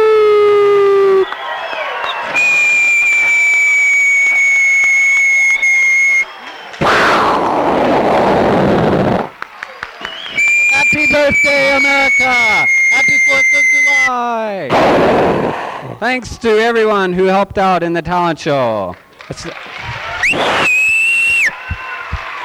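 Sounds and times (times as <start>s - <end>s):
group imitating a fireworks display: 0.0s - 1.4s, 2.1s - 9.6s, 10.2s - 14.1s, 14.7s - 16.0s, 19.4s - 22.4s
speech: 16.2s - 20.8s.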